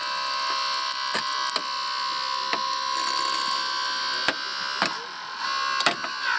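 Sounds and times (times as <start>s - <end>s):
hydraulic rescue cutter whining while slicing through a car: 0.0s - 6.3s.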